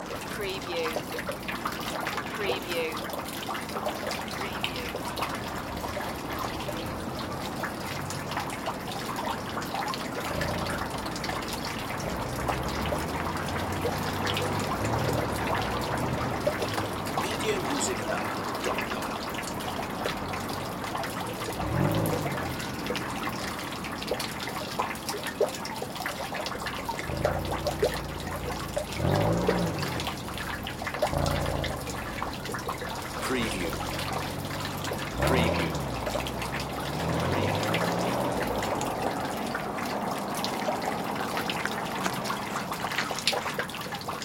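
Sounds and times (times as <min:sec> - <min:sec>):
rain: 0:00.0 - 0:44.2.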